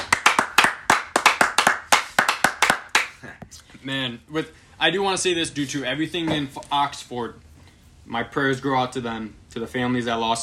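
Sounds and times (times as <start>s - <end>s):
hand clapping: 0.0s - 3.4s
speech: 3.8s - 7.5s, 8.1s - 10.4s.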